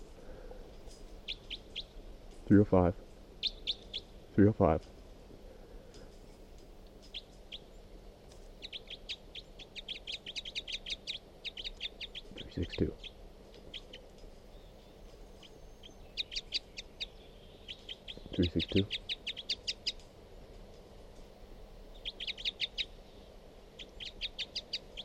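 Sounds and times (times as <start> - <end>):
bird calls: 0.9 - 2.0, 3.4 - 4.2, 7.0 - 20.0, 21.8 - 25.0
speech: 2.5 - 3.0, 4.4 - 5.0.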